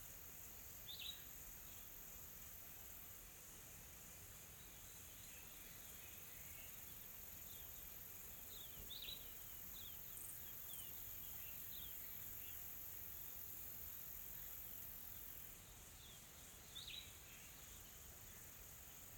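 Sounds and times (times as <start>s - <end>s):
soft insects in a calm tropical forest in South Africa: 0.0s - 19.1s.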